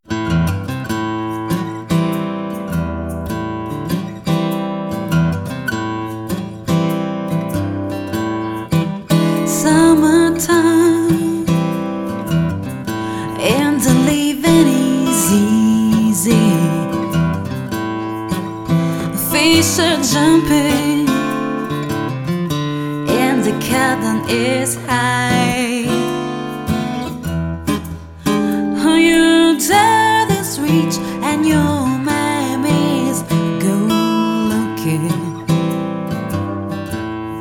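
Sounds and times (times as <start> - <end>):
guitar: 0.0 - 37.3
voice: 9.5 - 11.6, 13.2 - 17.2, 19.0 - 21.3, 23.1 - 26.1, 28.5 - 35.5.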